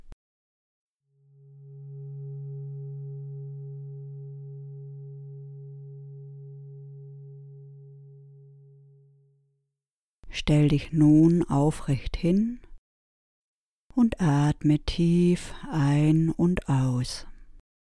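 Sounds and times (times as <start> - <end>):
meditation gong: 1.2 - 9.4
speech: 10.4 - 12.6, 14.0 - 17.3.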